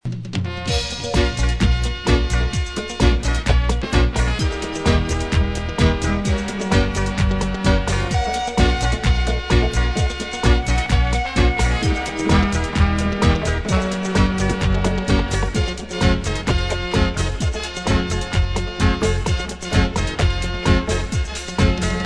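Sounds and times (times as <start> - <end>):
dub trombone: 0.3 - 22.0.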